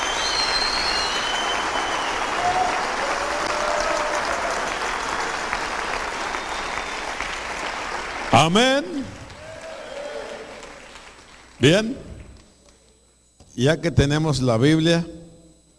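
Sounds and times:
loud audience applause: 0.0s - 11.6s
speech: 8.3s - 9.2s, 11.6s - 12.0s, 13.6s - 15.2s.

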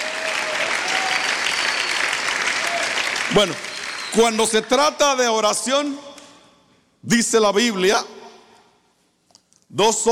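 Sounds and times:
audience applause: 0.0s - 4.5s
speech: 3.3s - 6.1s, 7.0s - 8.2s, 9.7s - 10.1s.

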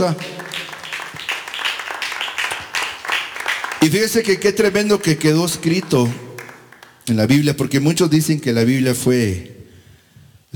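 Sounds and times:
speech: 0.0s - 0.4s, 3.8s - 6.2s, 7.1s - 9.6s
audience clapping: 0.0s - 7.4s.

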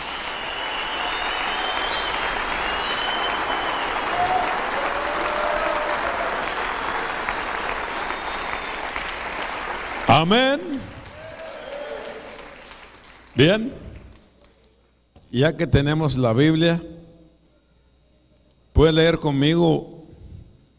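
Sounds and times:
audience applauding: 0.0s - 14.2s
speech: 10.1s - 10.9s, 13.4s - 13.8s, 15.3s - 16.9s, 18.8s - 19.9s.

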